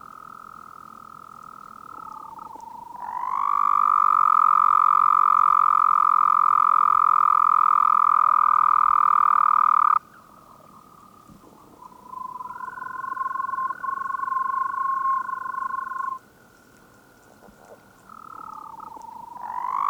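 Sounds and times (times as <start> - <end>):
Arizona toad Anaxyrus microscaphus trilling: 1.8 - 10.0, 12.0 - 16.2, 17.6 - 19.8.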